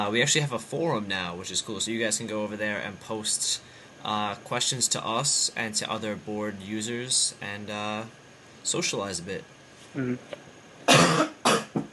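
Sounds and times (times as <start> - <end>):
speech: 0.0 - 11.3
soft voice: 9.9 - 10.4
person coughing: 10.9 - 11.9.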